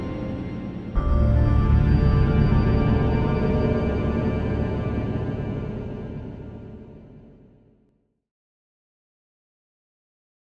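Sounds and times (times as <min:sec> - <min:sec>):
ambient atmosphere: 0:00.0 - 0:07.7.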